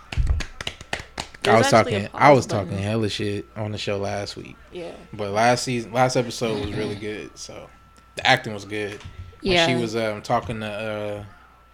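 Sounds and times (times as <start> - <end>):
hand clapping: 0.0 - 1.8
speech: 1.5 - 11.4.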